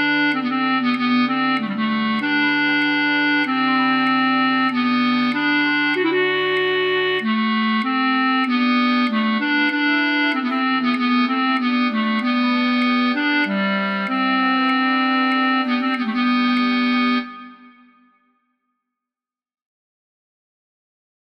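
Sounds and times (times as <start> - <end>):
flute choir with alto flute playing a practice track: 0.0 - 18.1.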